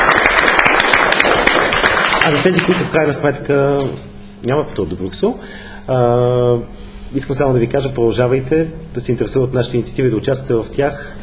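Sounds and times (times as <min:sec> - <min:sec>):
audience applauding for all participants: 0:00.0 - 0:03.0
speech: 0:02.3 - 0:11.2.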